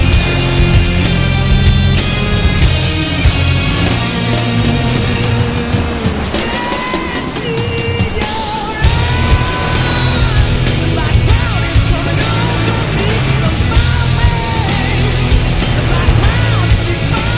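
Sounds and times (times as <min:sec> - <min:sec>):
melodic rock music: 0:00.0 - 0:17.3.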